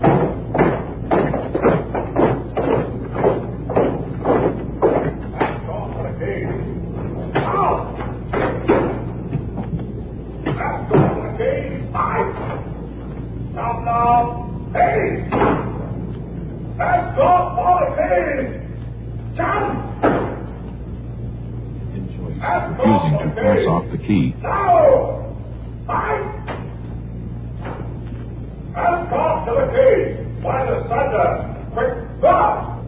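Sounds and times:
doors slamming shut at CBS: 0.0s - 13.1s, 14.9s - 16.1s, 19.4s - 20.7s, 26.0s - 28.2s
people talking and calling out: 4.9s - 32.8s.

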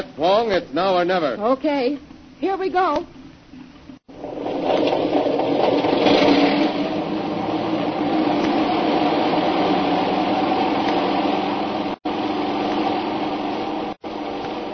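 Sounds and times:
speech: 0.0s - 3.2s
airplane engine: 4.1s - 14.7s.

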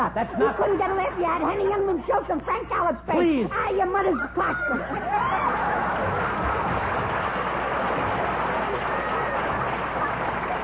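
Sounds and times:
laughter: 0.0s - 1.7s, 4.0s - 10.6s
speech: 0.1s - 6.4s
audience applause: 4.9s - 10.6s.

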